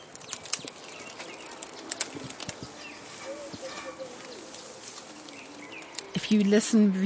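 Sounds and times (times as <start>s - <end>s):
soft bird calls: 0.0s - 6.6s
elephant dragging a leafy branch through a fence: 0.0s - 7.0s
speech: 6.2s - 7.0s.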